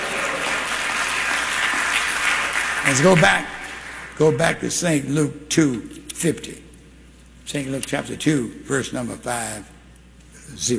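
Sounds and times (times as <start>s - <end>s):
church congregation clapping hands during a sermon: 0.0s - 4.4s
speech: 2.9s - 3.6s, 4.2s - 6.6s, 7.5s - 9.7s, 10.5s - 10.7s.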